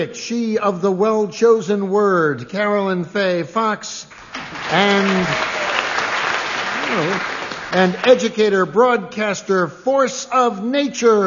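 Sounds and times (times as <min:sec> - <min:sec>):
speech: 0:00.0 - 0:05.6, 0:06.9 - 0:11.2
audience applause: 0:04.1 - 0:08.4.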